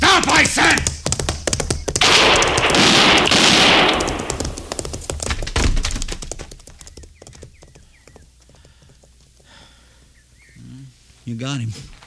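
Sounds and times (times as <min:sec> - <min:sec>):
knocks and thumps: 0:00.0 - 0:07.5
clattering noise: 0:01.3 - 0:06.5
gunfire in a western drama scene: 0:02.0 - 0:05.9
speech: 0:11.3 - 0:12.0.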